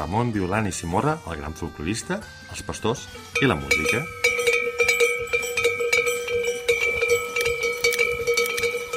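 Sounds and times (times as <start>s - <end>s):
speech: 0.0s - 4.2s
shepherds' cowbells (esquellots) ringing: 3.3s - 8.9s.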